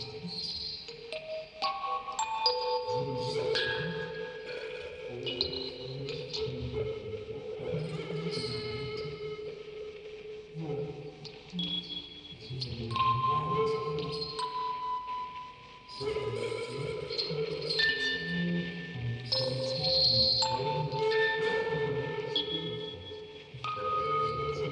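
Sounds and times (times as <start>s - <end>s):
field recording ambience: 0.0s - 24.6s
vocoder: 0.0s - 24.6s
quartet of music boxes playing: 0.2s - 5.0s, 12.9s - 22.4s.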